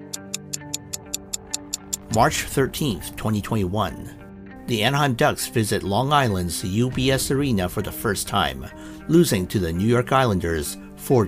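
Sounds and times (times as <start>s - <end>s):
clock ticking: 0.0s - 3.6s
speech: 2.1s - 11.2s.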